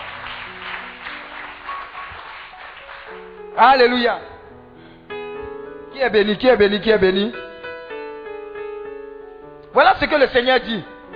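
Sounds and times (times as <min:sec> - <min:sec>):
church congregation applauding during a worship service: 0:00.0 - 0:03.6
speech: 0:03.6 - 0:04.3, 0:06.0 - 0:07.4, 0:09.8 - 0:11.1.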